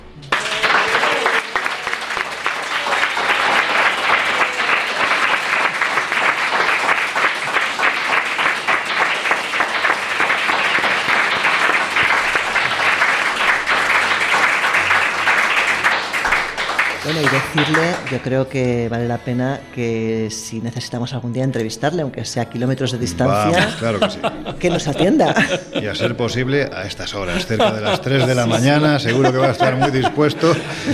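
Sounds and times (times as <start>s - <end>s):
audience applause: 0.2s - 18.2s, 27.4s - 30.9s
speech: 17.5s - 30.9s
laughter: 23.0s - 30.9s.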